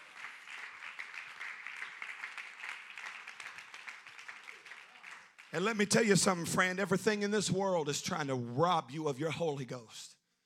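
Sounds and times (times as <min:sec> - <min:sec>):
audience clapping: 0:00.0 - 0:06.8
speech: 0:05.5 - 0:10.2.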